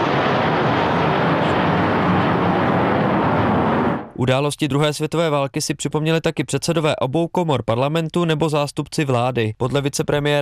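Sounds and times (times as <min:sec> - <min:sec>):
military aircraft flying overhead: 0:00.0 - 0:04.2
speech: 0:04.2 - 0:10.4.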